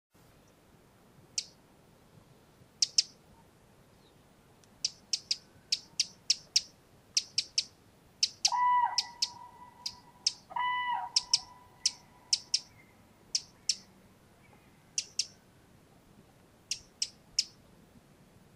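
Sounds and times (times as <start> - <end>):
Eurasian wren giving ticking calls: 1.3 - 1.6, 2.8 - 3.2, 4.6 - 15.4, 16.6 - 17.6.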